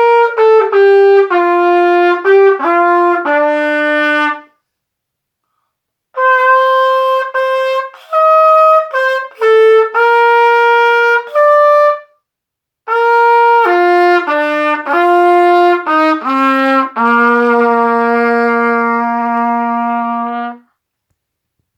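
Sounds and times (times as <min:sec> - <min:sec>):
trumpet playing a Christmas carol: 0:00.0 - 0:04.6, 0:06.2 - 0:12.2, 0:12.9 - 0:20.8.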